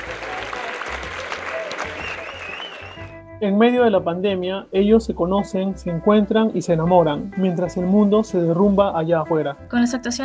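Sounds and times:
applause from balconies: 0.0s - 3.1s
speech: 3.4s - 10.2s.

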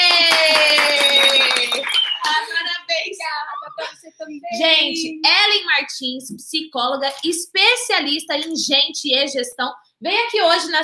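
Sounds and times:
people clapping in applause: 0.0s - 2.8s
speech: 4.6s - 10.8s.

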